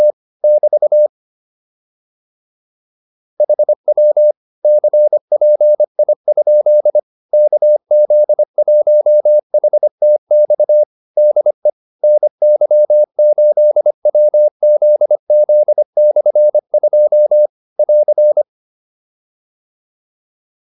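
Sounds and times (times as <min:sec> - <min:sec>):
morse code QSO practice: 0:03.4 - 0:18.4.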